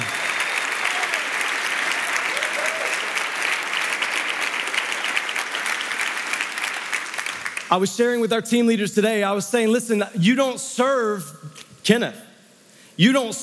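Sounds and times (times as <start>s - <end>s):
church congregation applauding volunteer teams: 0.0s - 7.9s
speech: 7.7s - 12.3s, 13.0s - 13.4s.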